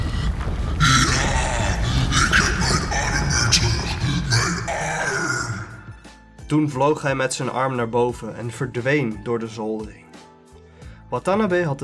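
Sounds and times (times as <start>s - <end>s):
monster's horrible roaring scream: 0.0s - 6.0s
speech: 6.5s - 10.0s, 11.1s - 11.8s.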